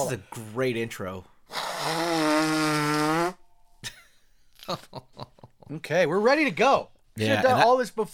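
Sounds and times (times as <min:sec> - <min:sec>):
speech: 0:00.0 - 0:02.6, 0:04.7 - 0:08.1
person blowing nose: 0:01.5 - 0:03.4.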